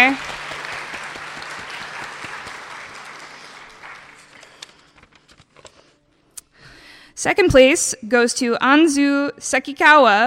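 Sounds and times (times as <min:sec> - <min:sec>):
audience applause: 0:00.0 - 0:05.2
speech: 0:07.2 - 0:10.2.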